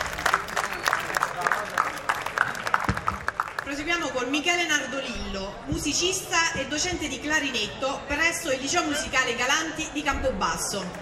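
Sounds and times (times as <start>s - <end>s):
audience applause: 0.0s - 3.7s
speech: 3.8s - 11.0s.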